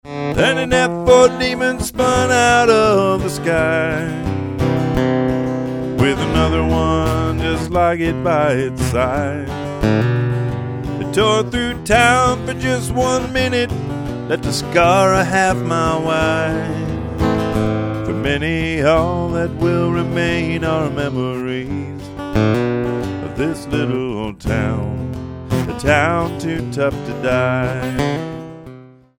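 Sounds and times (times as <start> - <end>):
song: 0.3 - 28.7.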